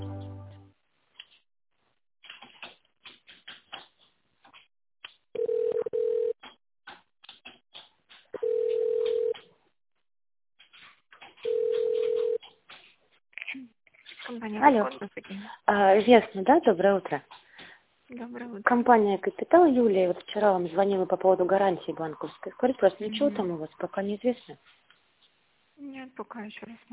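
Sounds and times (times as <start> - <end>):
telephone ringback tone: 5.4 - 6.4, 8.4 - 9.4, 11.5 - 12.4
speech: 14.4 - 17.4, 18.1 - 24.8, 26.2 - 26.9.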